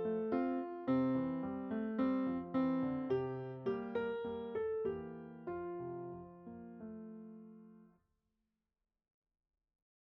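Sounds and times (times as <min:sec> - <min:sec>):
electric piano: 0:00.0 - 0:07.8.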